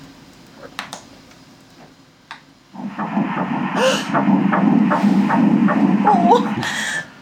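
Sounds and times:
fetal heartbeat on an ultrasound monitor: 0:02.8 - 0:07.2.

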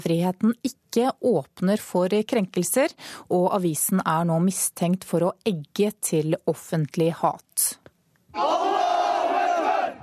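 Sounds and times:
speech: 0:00.0 - 0:07.8, 0:08.4 - 0:08.7
large crowd of demonstrators shouting in unison: 0:08.3 - 0:10.0.

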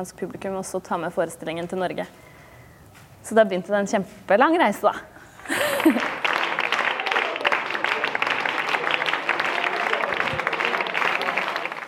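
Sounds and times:
speech: 0:00.0 - 0:02.3, 0:03.2 - 0:06.1
audience applause: 0:05.5 - 0:11.8
laughter: 0:05.5 - 0:11.8.

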